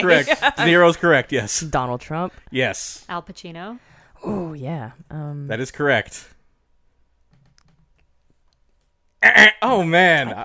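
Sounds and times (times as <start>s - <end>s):
speech: 0.0s - 6.4s, 9.2s - 10.4s
keyboard typing: 7.3s - 8.1s.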